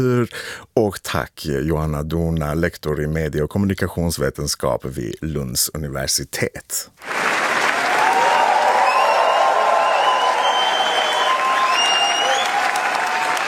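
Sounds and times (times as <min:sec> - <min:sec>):
speech: 0:00.0 - 0:07.4
large crowd standing ovation at film premiere: 0:07.0 - 0:13.4
faint cheers: 0:07.2 - 0:13.4
high whistles: 0:08.3 - 0:13.0.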